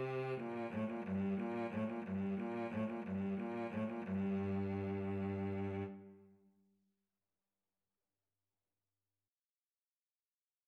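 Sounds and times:
violin and cello duet: 0:00.0 - 0:06.1.

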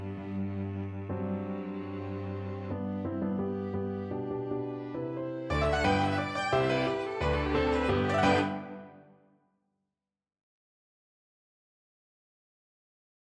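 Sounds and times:
piano quartet playing: 0:00.2 - 0:09.1.

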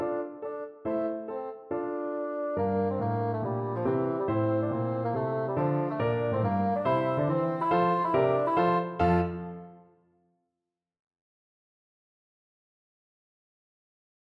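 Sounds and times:
bassoon: 0:00.0 - 0:09.9.

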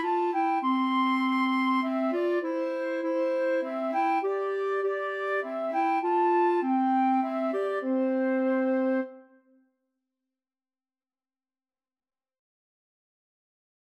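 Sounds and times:
two flutes playing a hymn: 0:00.0 - 0:09.3.

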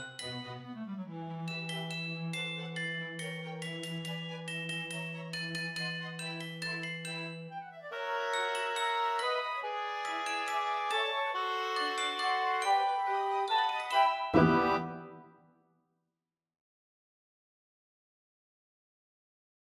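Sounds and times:
orchestra: 0:00.0 - 0:15.3.

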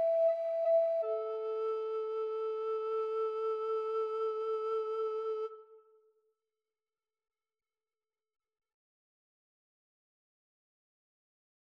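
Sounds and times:
alto recorder duet playing a pavane: 0:00.0 - 0:05.7.

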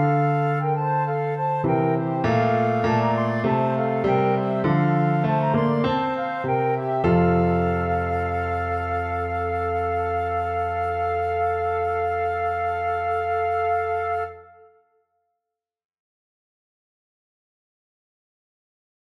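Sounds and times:
flute duet: 0:00.0 - 0:15.0.

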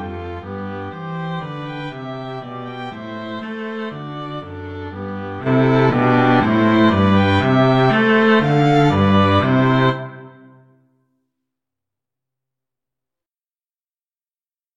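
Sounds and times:
string trio playing: 0:00.0 - 0:10.6.

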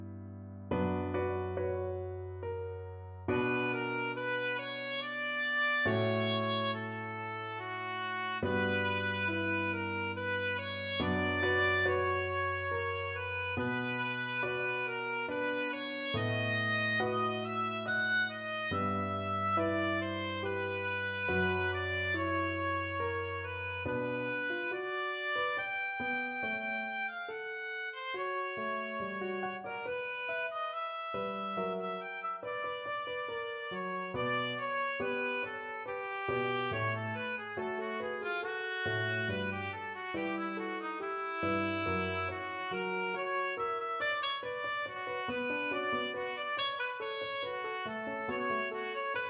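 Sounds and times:
oboe piece: 0:00.7 - 0:49.2.

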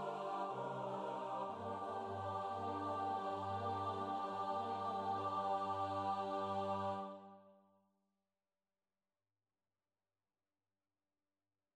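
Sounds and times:
choir singing: 0:00.0 - 0:07.5.

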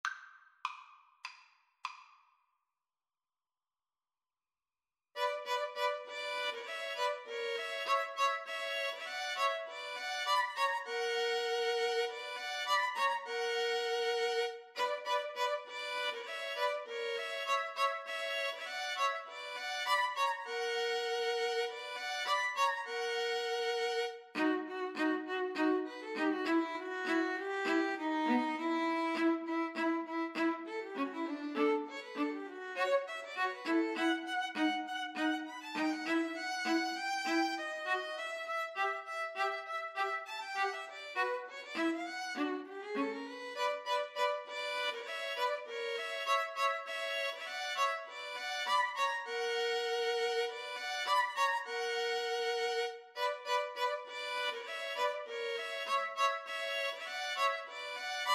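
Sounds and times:
string trio playing: 0:05.2 - 0:58.3.

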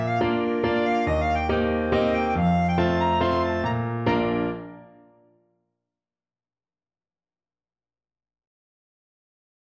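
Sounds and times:
Polish kujawiak folk dance on clarinet: 0:00.0 - 0:04.8.

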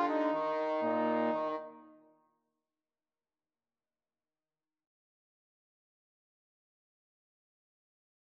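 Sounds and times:
trombone duet: 0:00.0 - 0:01.7.

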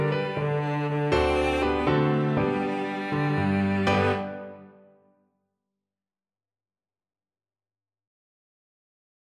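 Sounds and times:
violin and cello duet: 0:00.0 - 0:04.7.

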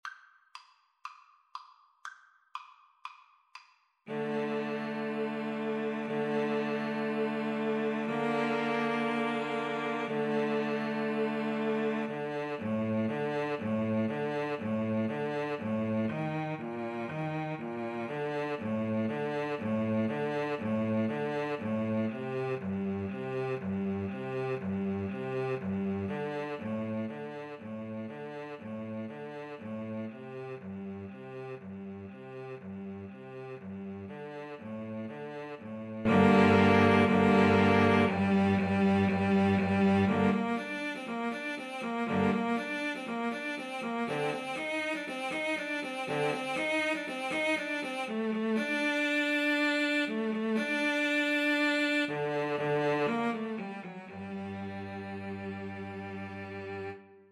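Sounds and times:
cello: 0:04.1 - 0:57.2
viola: 0:04.1 - 0:57.2.

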